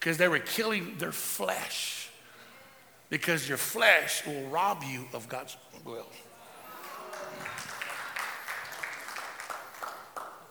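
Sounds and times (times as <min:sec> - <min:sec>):
speech: 0:00.0 - 0:02.1, 0:03.1 - 0:06.3
two people clapping: 0:06.8 - 0:10.4.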